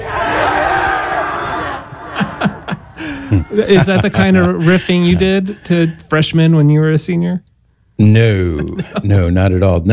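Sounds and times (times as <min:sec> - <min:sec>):
hundreds of students screaming and cheering: 0:00.0 - 0:03.7
laughter: 0:01.5 - 0:06.1, 0:08.3 - 0:09.4
speech: 0:03.3 - 0:09.9.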